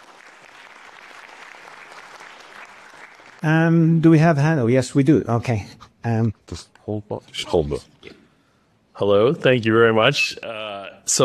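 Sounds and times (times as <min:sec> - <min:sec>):
audience clapping: 0:00.0 - 0:03.8
speech: 0:03.4 - 0:08.2, 0:09.0 - 0:11.2.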